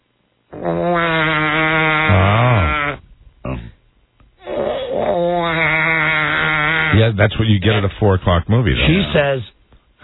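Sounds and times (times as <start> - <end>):
voice imitating crying baby: 0.5 - 3.7, 4.4 - 7.0
speech: 0.7 - 1.0, 7.1 - 9.5.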